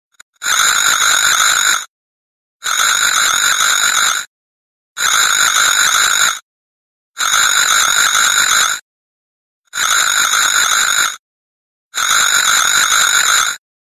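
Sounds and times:
alarm: 0.1 - 1.9, 2.6 - 4.2, 5.0 - 6.5, 7.2 - 8.8, 9.7 - 11.2, 11.9 - 13.6.

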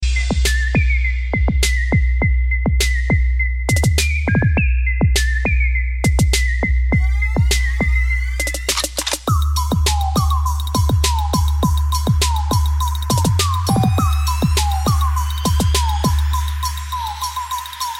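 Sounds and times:
trap beat: 0.0 - 17.9.

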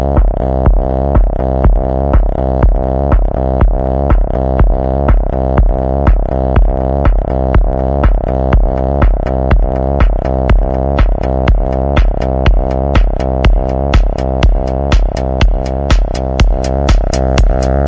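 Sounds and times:
punk rock music: 0.2 - 17.8.

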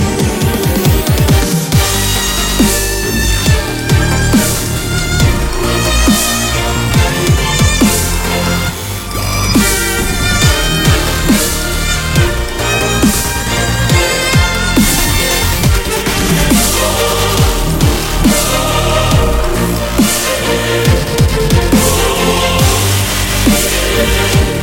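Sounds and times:
dubstep music: 0.0 - 24.6.

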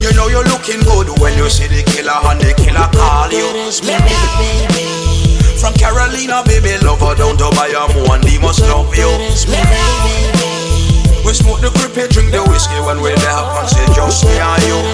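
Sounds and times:
Puerto Rican reggae: 0.0 - 14.9.

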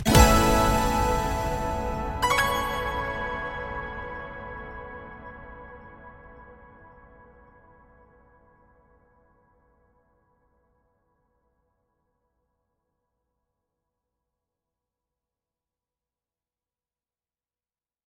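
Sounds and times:
synthwave music: 0.0 - 6.7.

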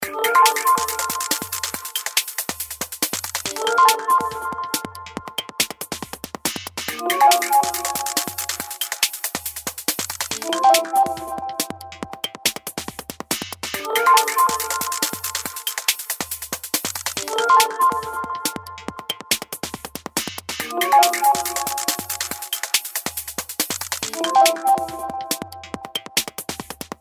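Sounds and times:
synthesizer music: 0.0 - 2.4, 3.4 - 5.5, 6.9 - 9.4, 10.3 - 12.4, 13.8 - 16.2, 17.2 - 19.4, 20.6 - 23.2, 24.0 - 26.2.

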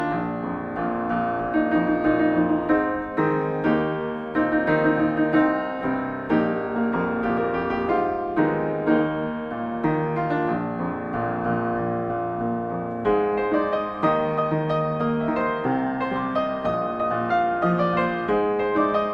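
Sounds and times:
piano: 0.0 - 19.1.

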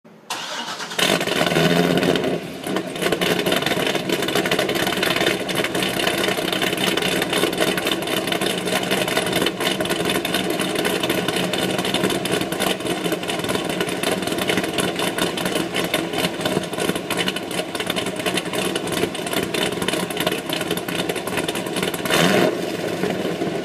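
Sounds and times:
Corvette engine starting up: 0.2 - 23.6.

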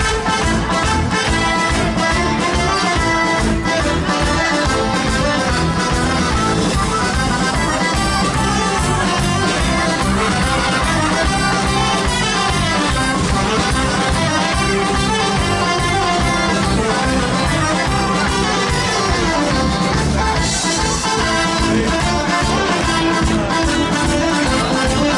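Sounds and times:
wedding tarantella music: 0.0 - 25.1.

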